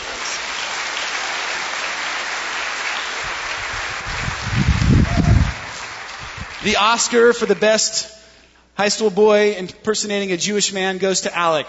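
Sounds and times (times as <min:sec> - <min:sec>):
audience applause: 0:00.0 - 0:07.6
low rumbling cheers or stomps: 0:04.0 - 0:06.6
speech: 0:06.6 - 0:08.2, 0:08.8 - 0:11.6.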